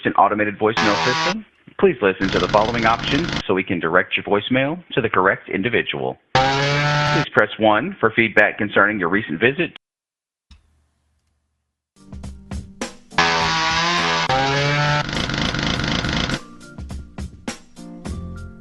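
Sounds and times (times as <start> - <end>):
speech: 0.0 - 9.8
chainsaw running: 0.8 - 1.4, 2.2 - 3.4, 6.4 - 7.2, 13.2 - 16.4.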